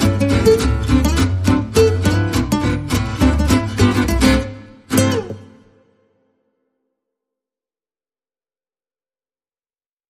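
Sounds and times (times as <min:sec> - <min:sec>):
bass: 0:00.0 - 0:05.8
guitars: 0:00.0 - 0:06.3.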